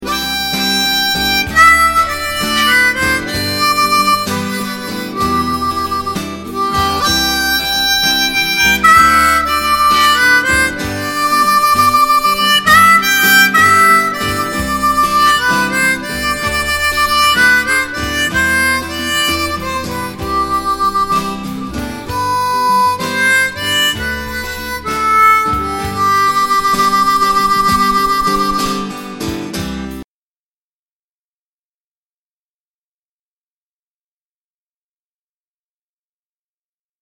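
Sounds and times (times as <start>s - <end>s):
harp: 0.0s - 29.6s.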